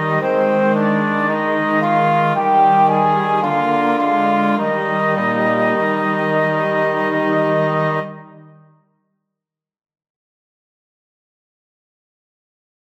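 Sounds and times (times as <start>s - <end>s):
instruments playing in three parts in E-flat major: 0.0s - 8.8s.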